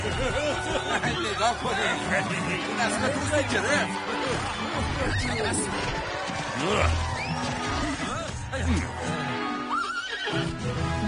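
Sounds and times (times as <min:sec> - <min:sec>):
speech: 0:00.0 - 0:07.1, 0:08.6 - 0:09.2
laughter: 0:00.0 - 0:09.3
powerful horse neighing: 0:09.7 - 0:10.6.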